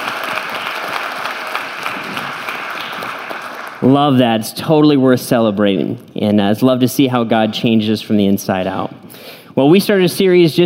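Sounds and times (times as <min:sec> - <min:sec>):
audience clapping: 0:00.0 - 0:04.0
speech: 0:03.8 - 0:10.6.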